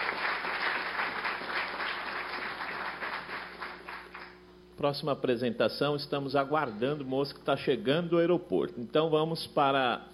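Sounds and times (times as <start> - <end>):
audience applause: 0.0 - 4.3
speech: 4.8 - 10.1.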